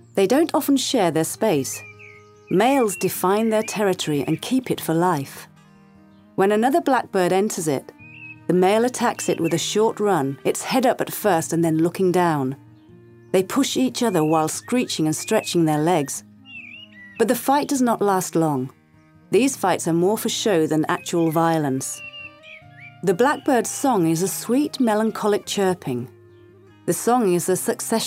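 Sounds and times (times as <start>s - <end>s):
blackbird singing: 0.0s - 28.0s.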